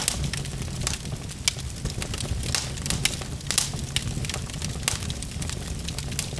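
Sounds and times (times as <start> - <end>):
fire: 0.0 - 6.3.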